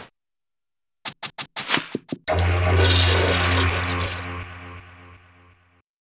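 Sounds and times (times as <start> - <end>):
epic battle sound effects: 1.1 - 5.3.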